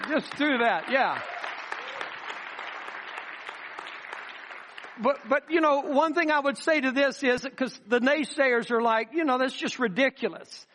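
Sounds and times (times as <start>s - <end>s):
audience clapping: 0.0s - 5.6s
speech: 0.1s - 1.4s, 5.0s - 10.7s.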